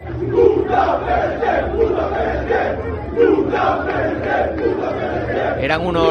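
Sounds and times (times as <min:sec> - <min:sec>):
football fans chanting at team's arrival at hotel: 0:00.0 - 0:06.0.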